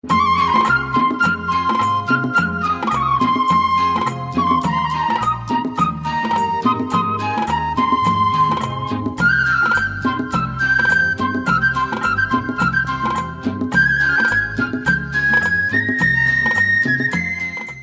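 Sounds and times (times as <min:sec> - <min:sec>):
Malayalam evergreen tune ringtone: 0:00.0 - 0:17.8.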